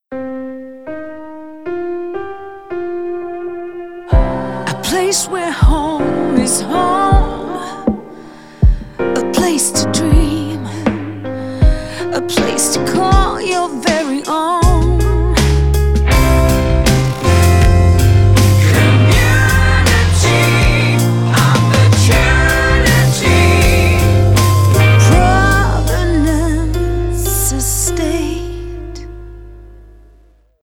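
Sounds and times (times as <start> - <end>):
full vocals: 4.1 - 16.6, 17.2 - 29.2.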